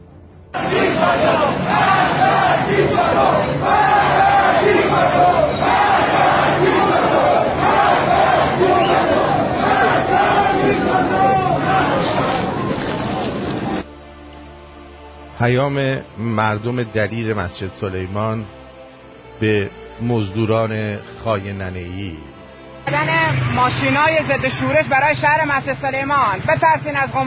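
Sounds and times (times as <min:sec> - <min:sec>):
crowd shouting and chanting: 0:00.6 - 0:13.8
speech: 0:15.4 - 0:18.6, 0:19.4 - 0:27.2.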